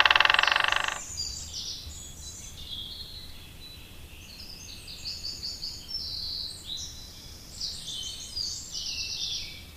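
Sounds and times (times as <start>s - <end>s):
White-backed woodpecker drumming: 0.0s - 1.1s.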